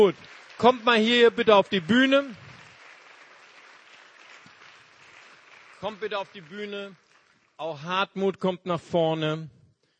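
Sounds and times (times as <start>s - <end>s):
speech: 0.0s - 2.4s, 5.8s - 7.0s, 7.6s - 9.6s
audience applause: 0.0s - 7.8s.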